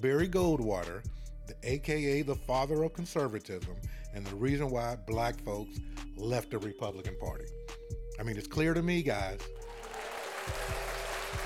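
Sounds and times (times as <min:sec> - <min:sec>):
speech: 0:00.0 - 0:09.7
applause: 0:09.6 - 0:11.4.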